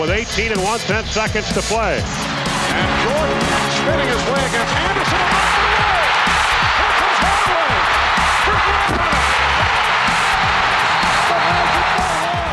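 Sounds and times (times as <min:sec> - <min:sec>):
speech: 0:00.0 - 0:05.9
basketball arena crowd roaring: 0:04.1 - 0:12.5
shouts and whoops: 0:05.5 - 0:12.5.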